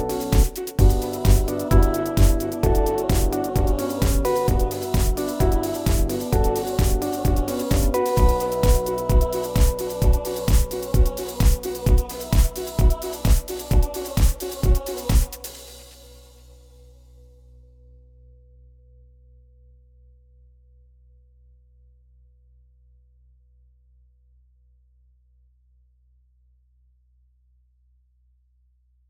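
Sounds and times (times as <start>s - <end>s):
dance house hip-hop techno music: 0.0s - 15.7s.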